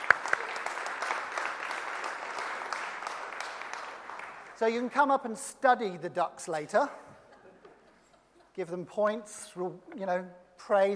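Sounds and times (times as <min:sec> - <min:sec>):
audience applause: 0:00.0 - 0:04.6
speech: 0:04.6 - 0:07.0, 0:08.6 - 0:10.9
laughter: 0:07.0 - 0:08.8.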